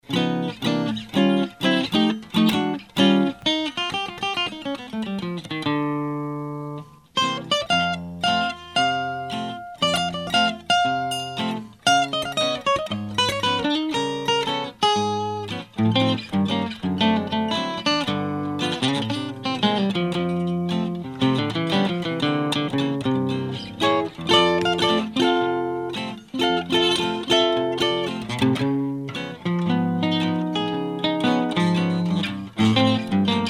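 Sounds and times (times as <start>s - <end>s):
Gibson L-12 guitar: 0.0s - 33.4s.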